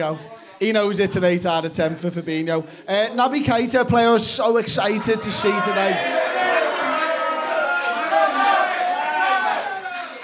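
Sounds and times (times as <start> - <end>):
speech: 0.0 - 6.5
crowd shouting man of the match: 4.8 - 10.2.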